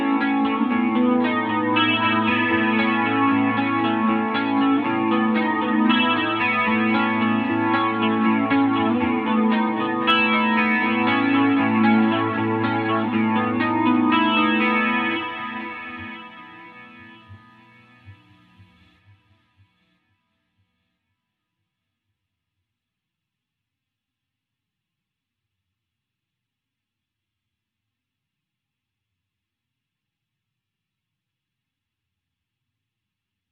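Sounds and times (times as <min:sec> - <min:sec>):
guitar: 0:00.0 - 0:21.4.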